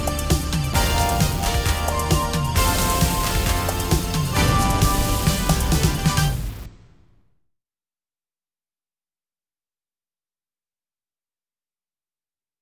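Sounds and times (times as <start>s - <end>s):
thunder in a storm: 0.8s - 7.3s.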